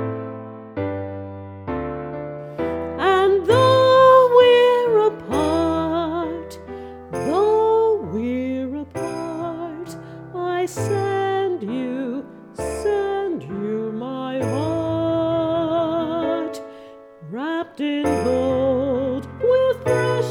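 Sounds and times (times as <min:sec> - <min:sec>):
piano chords: 0:00.0 - 0:20.2
solo voice singing: 0:02.9 - 0:20.2
sleigh bells: 0:03.1 - 0:11.8, 0:14.4 - 0:15.7, 0:18.0 - 0:20.2.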